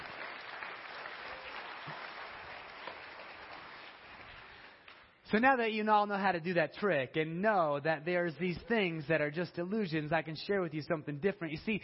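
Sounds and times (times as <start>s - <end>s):
audience applause: 0.0s - 4.9s
speech: 5.3s - 11.8s.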